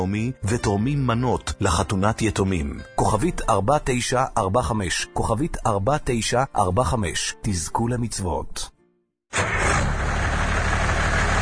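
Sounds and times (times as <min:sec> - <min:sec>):
speech: 0:00.0 - 0:08.7
old diesel engine idling: 0:09.4 - 0:11.4.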